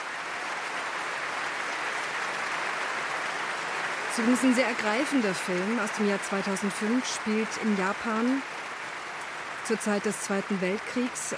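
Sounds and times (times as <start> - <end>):
orchestra and audience applauding and cheering: 0.0 - 11.3
speech: 4.2 - 8.6, 9.7 - 11.3.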